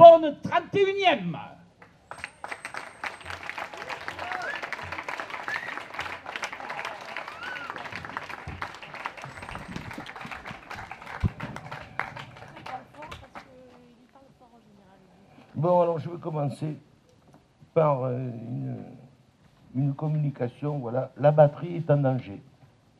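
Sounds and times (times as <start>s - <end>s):
speech: 0.3s - 2.3s, 15.6s - 16.9s, 17.8s - 19.0s, 19.8s - 22.5s
audience applause: 2.1s - 13.6s.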